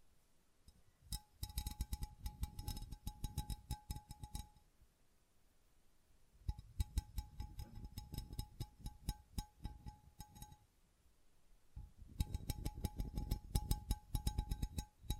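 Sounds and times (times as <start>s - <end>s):
thin steady tone: 0.6s - 4.7s, 6.4s - 10.8s, 11.8s - 15.1s
tapping and scratching: 1.1s - 4.5s, 6.5s - 10.6s, 11.8s - 15.1s.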